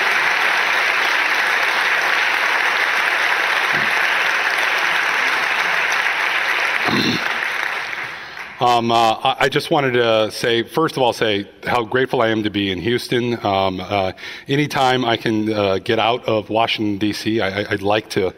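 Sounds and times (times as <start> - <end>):
audience applause welcoming a speaker in Houston, Texas: 0.0 - 9.1
speech: 8.6 - 18.3.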